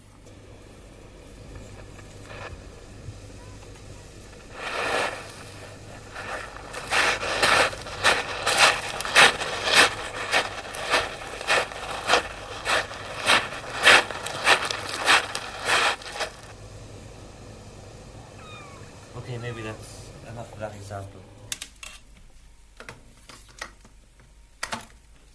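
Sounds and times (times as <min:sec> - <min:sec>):
footsteps crunching at an even walking pace: 0:01.6 - 0:02.6, 0:03.6 - 0:16.6.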